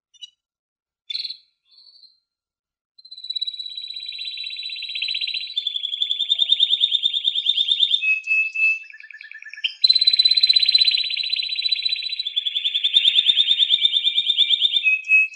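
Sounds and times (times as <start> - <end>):
canary song: 0.0 - 2.4, 3.0 - 15.3.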